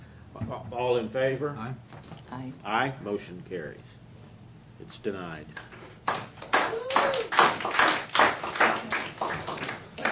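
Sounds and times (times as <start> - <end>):
speech: 0.5 - 4.0, 4.8 - 5.8
hands clapping: 5.5 - 10.1.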